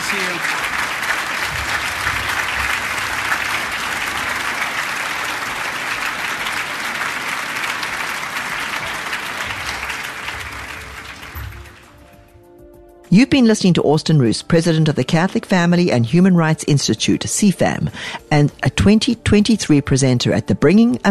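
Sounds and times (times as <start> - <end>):
audience applause: 0.0 - 12.1
speech: 13.2 - 21.0.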